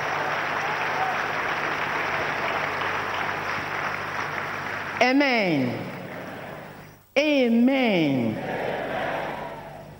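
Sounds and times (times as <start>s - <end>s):
audience applause: 0.0s - 6.8s
speech: 5.0s - 5.9s, 7.2s - 8.7s.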